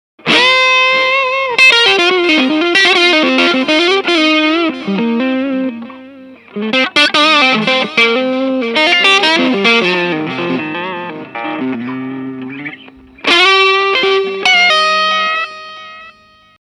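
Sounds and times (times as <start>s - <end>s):
bluesy crunch tone: 0.2s - 16.5s.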